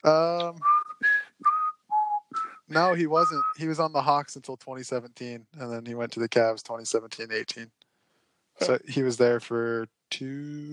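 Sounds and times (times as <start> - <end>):
speech: 0.0 - 0.7, 2.7 - 7.8, 8.6 - 10.7
person whistling a theme tune: 0.4 - 3.7.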